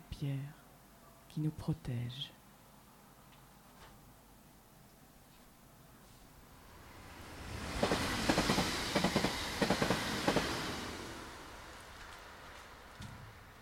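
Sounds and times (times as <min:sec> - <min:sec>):
speech: 0:00.2 - 0:00.6, 0:01.3 - 0:02.4
train running on rails: 0:06.5 - 0:13.6.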